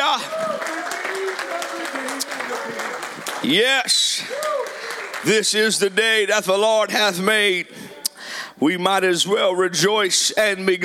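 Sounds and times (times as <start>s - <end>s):
audience clapping hands: 0.0s - 6.0s
speech: 3.4s - 4.6s, 5.2s - 7.8s, 8.6s - 10.8s.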